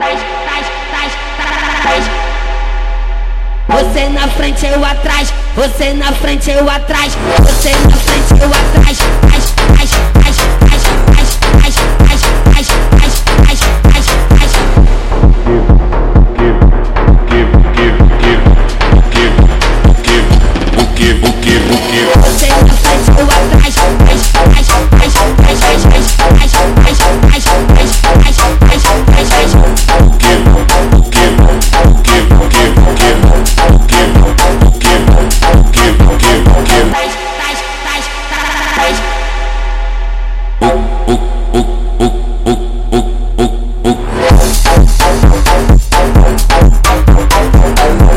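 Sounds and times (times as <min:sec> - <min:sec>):
phonk music: 0:00.0 - 0:48.1.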